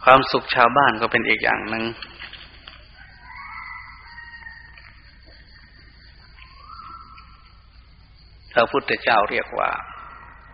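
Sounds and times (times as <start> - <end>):
speech: 0.0 - 2.3, 8.6 - 9.9
steady hiss: 0.0 - 10.5
rooster crowing: 2.8 - 7.4, 9.8 - 10.5.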